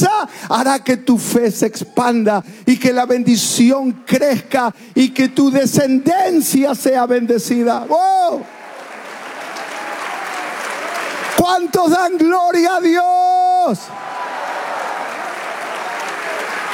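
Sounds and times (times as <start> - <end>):
speech: 0.0 - 8.6, 11.4 - 14.1
audience applause: 8.2 - 12.3, 13.7 - 16.7.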